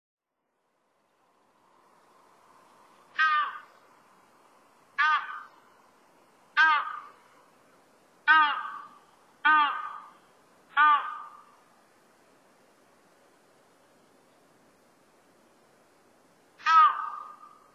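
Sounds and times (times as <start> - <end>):
crested ibis giving harsh nasal crow-like calls on Sado: 3.1 - 3.8, 5.0 - 5.7, 6.5 - 7.3, 8.2 - 11.6, 16.6 - 17.7.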